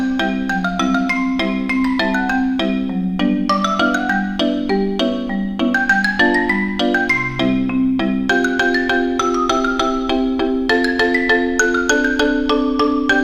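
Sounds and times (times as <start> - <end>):
cute xylophone: 0.0 - 13.2.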